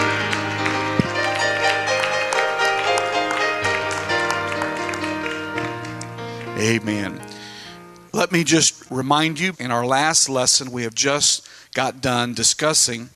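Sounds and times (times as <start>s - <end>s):
audience clapping hands: 0.0s - 7.3s
speech: 6.6s - 7.3s, 8.2s - 13.1s.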